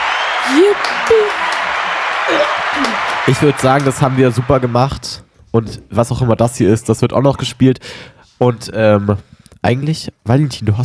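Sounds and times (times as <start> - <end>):
crowd applause: 0.0 - 5.2
speech: 0.5 - 10.8.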